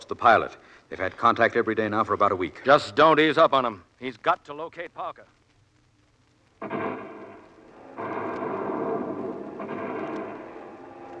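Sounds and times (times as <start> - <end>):
speech: 0.1 - 5.4
bomber planes flying over: 6.6 - 11.1.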